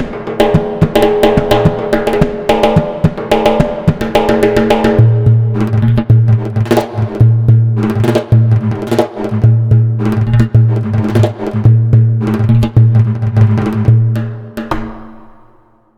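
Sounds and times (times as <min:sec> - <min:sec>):
Arabic percussion: 0:00.0 - 0:15.9.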